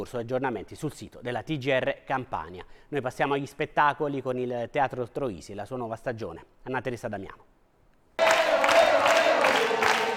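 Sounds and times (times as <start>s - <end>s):
speech: 0.0s - 7.5s
packed crowd cheering stadium-style in the Teatro Troisi hall: 8.2s - 10.1s.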